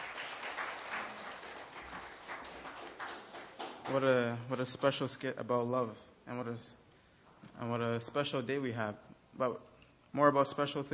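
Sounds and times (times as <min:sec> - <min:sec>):
audience applause: 0:00.0 - 0:04.0
speech: 0:03.9 - 0:06.8, 0:07.5 - 0:10.9.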